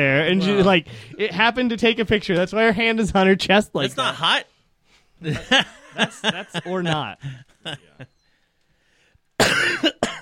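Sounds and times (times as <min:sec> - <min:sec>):
speech: 0:00.0 - 0:04.5, 0:05.2 - 0:08.1
laughter: 0:05.2 - 0:08.2
harsh coughing from someone recovering from a cold: 0:09.4 - 0:10.1.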